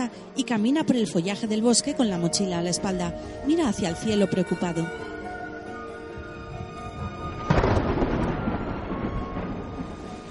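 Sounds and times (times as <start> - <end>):
speech: 0.0 - 5.2
heavy rain at night: 6.5 - 10.3.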